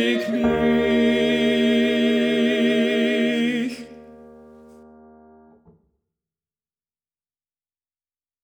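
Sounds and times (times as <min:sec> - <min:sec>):
tenor singing: 0:00.0 - 0:04.3.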